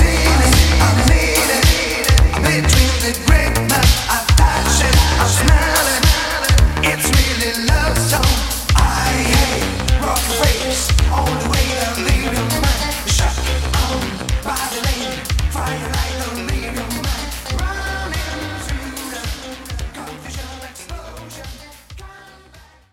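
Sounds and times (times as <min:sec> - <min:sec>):
1980s Italo disco drum beat: 0:00.0 - 0:22.2.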